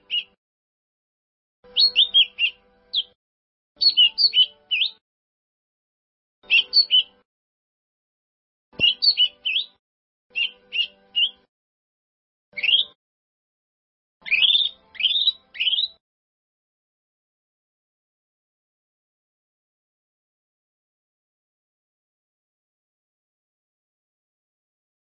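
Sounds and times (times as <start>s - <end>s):
bird song: 0.0s - 0.4s, 1.6s - 3.2s, 3.8s - 5.0s, 6.4s - 7.2s, 8.8s - 11.5s, 12.5s - 13.0s, 14.2s - 16.0s.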